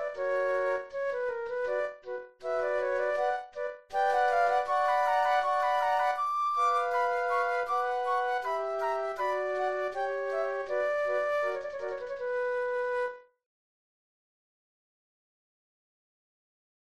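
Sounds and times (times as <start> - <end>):
flute trio playing a classical piece: 0.2 - 13.2.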